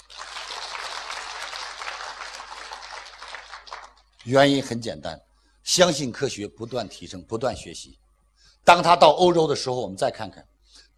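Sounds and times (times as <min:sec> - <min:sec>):
applause and cheering: 0:00.0 - 0:04.2
speech: 0:04.2 - 0:08.0, 0:08.6 - 0:10.9.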